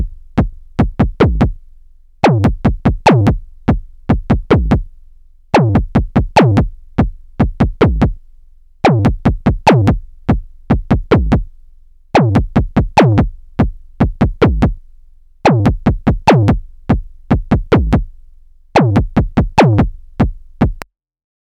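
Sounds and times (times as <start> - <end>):
tonal kick drum trigger: 0.0 - 1.6, 2.2 - 4.9, 5.6 - 8.2, 8.9 - 11.5, 12.2 - 14.8, 15.5 - 18.1, 18.8 - 20.8.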